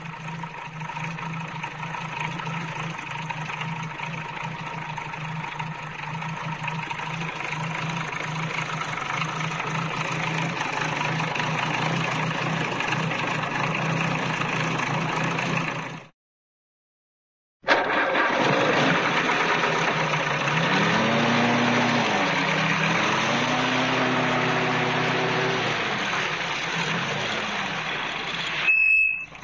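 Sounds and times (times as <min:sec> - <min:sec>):
cartoon jeep starting and pulling away: 0:00.0 - 0:16.0, 0:17.7 - 0:29.4.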